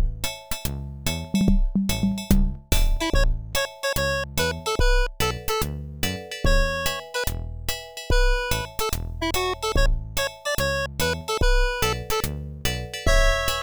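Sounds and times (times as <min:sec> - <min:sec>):
reggae music: 0:01.3 - 0:05.7, 0:06.5 - 0:07.3, 0:08.2 - 0:12.3, 0:13.1 - 0:13.6.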